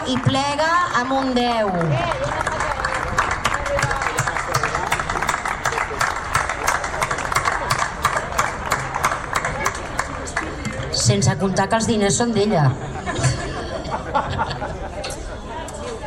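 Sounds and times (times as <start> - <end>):
sustained loud applause from a crowd: 0.0 - 10.6
faint murmur of voices: 0.0 - 16.0
speech: 0.1 - 2.7, 11.1 - 13.3
laughter: 12.8 - 16.0.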